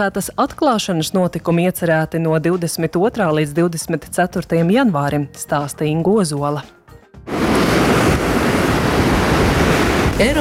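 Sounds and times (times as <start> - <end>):
speech: 0.0 - 7.4, 10.2 - 10.3
strong gusts of wind in Liepāja: 7.3 - 10.3.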